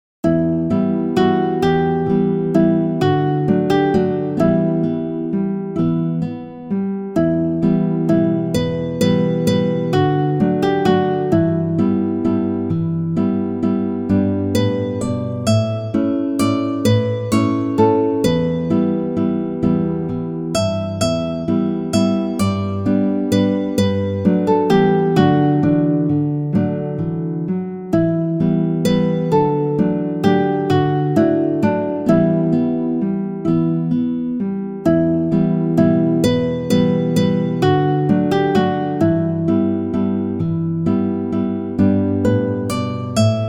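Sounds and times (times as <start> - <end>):
guitar folk melody: 0.2 - 43.4.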